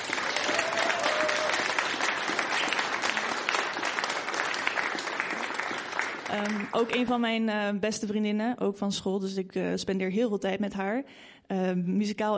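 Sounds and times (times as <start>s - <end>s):
audience applause: 0.0s - 7.1s
speech: 6.3s - 12.3s.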